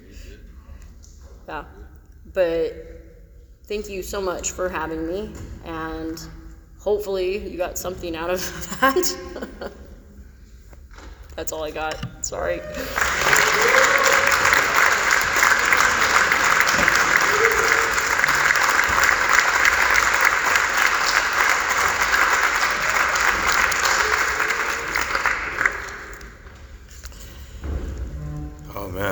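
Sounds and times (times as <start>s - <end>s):
speech: 1.5s - 3.0s, 3.7s - 9.8s, 11.4s - 13.1s
audience applause: 12.7s - 26.6s.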